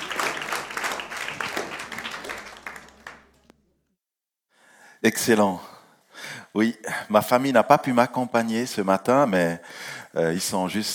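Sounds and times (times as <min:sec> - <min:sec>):
audience applause: 0:00.0 - 0:03.5
speech: 0:05.0 - 0:05.7, 0:06.6 - 0:10.9.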